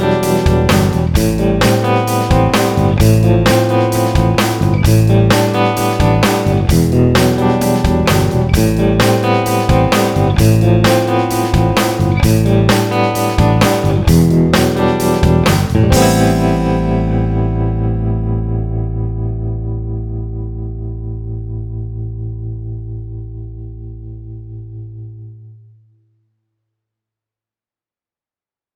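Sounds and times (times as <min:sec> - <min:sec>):
band playing: 0:00.0 - 0:18.4
clean electric guitar through a vintage combo amplifier: 0:00.0 - 0:25.8.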